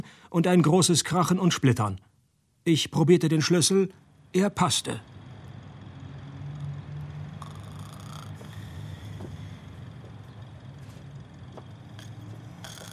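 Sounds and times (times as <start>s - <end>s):
speech: 0.0s - 5.1s
person snoring: 6.6s - 10.0s, 11.8s - 12.9s.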